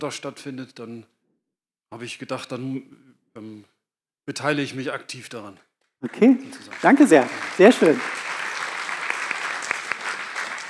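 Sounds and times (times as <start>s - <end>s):
speech: 0.0s - 1.2s, 1.9s - 8.2s
audience applause: 6.0s - 10.6s.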